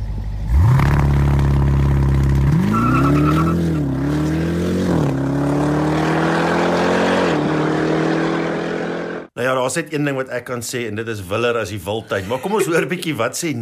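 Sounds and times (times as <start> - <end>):
engine of the fastest most powerful production SUV, 2.5-ton, revving hard: 0.4 - 9.3
speech: 9.8 - 13.6
laughter: 11.9 - 13.4.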